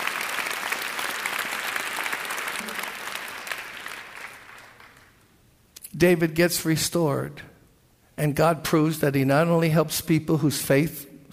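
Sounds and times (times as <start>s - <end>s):
audience applause: 0.0s - 5.2s
speech: 6.0s - 7.5s, 8.2s - 11.3s.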